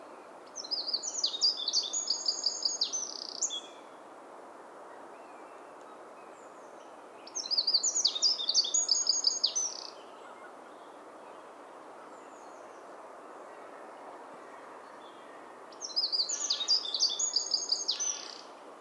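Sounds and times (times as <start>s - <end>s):
background hiss: 0.0s - 18.7s
Eurasian wren singing: 0.6s - 3.8s, 7.3s - 10.4s, 15.1s - 18.5s.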